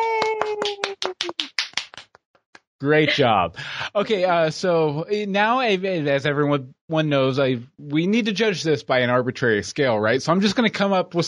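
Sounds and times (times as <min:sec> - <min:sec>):
hand claps: 0:00.0 - 0:02.7
speech: 0:02.8 - 0:11.2.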